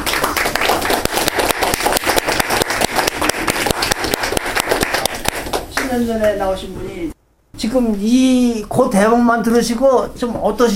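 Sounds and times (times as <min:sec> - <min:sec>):
crowd applause: 0:00.0 - 0:05.6
speech: 0:05.9 - 0:10.7.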